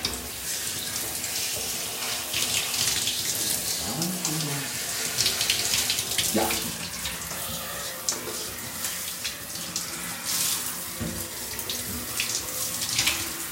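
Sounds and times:
tap water running while hair is washed: 0.0s - 13.4s
water splashing: 3.7s - 13.4s.

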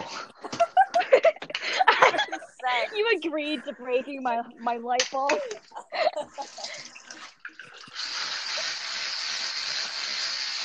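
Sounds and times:
laughter: 0.1s - 4.0s, 5.3s - 6.9s
speech: 3.0s - 6.4s
teeth being brushed: 8.0s - 10.6s.

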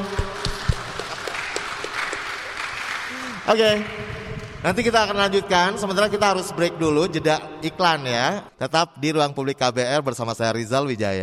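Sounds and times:
audience applause: 0.0s - 4.6s
speech: 3.5s - 4.0s, 4.6s - 11.2s.

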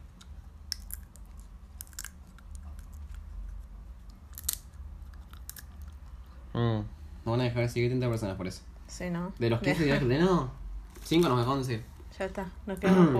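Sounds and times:
soft chewing: 0.0s - 6.5s
low steady rumble: 0.0s - 13.1s
sunflower seed shells being bitten open: 0.2s - 6.0s
laughter: 4.5s - 6.3s
speech: 6.6s - 13.1s.

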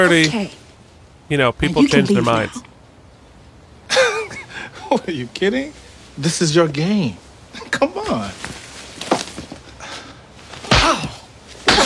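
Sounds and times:
speech: 0.0s - 0.6s, 1.3s - 2.7s, 4.9s - 8.4s
slap: 10.7s - 11.1s.

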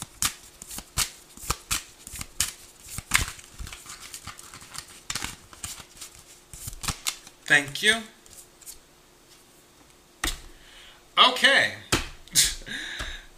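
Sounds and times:
tarot cards being shuffled and drawn: 0.1s - 8.8s
speech: 7.5s - 8.2s, 11.2s - 11.8s.

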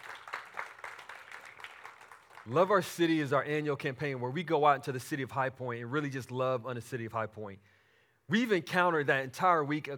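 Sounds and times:
applause from church audience: 0.0s - 2.5s
speech: 2.4s - 9.9s.

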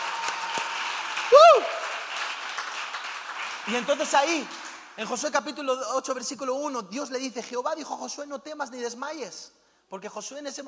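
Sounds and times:
audience applause: 0.0s - 4.8s
speech: 3.7s - 10.6s.

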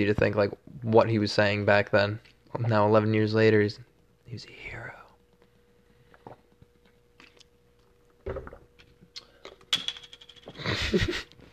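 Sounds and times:
speech: 0.0s - 4.9s, 10.7s - 11.3s
person drinking water: 5.0s - 9.6s.

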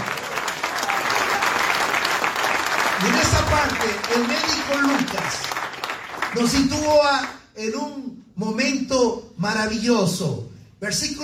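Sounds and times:
audience applause: 0.0s - 6.9s
speech: 3.0s - 5.5s, 6.3s - 11.2s.

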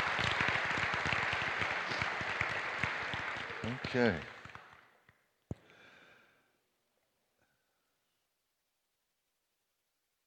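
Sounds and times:
audience applause: 0.0s - 5.0s
speech: 3.6s - 4.4s.

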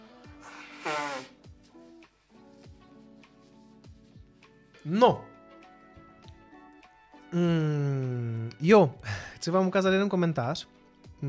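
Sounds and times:
nose blowing: 0.0s - 1.9s
speech: 4.8s - 5.3s, 7.3s - 7.6s, 8.7s - 11.2s.

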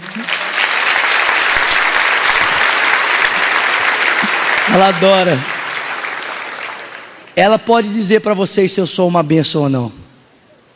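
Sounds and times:
crowd applause: 0.0s - 7.4s
speech: 4.7s - 5.5s, 7.4s - 10.1s.

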